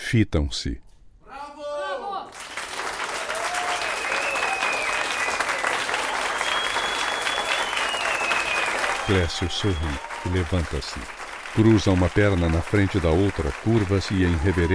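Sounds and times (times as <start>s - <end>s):
speech: 0.1s - 0.9s, 9.1s - 14.7s
audience applause: 2.3s - 14.7s
high whistles: 3.5s - 10.4s.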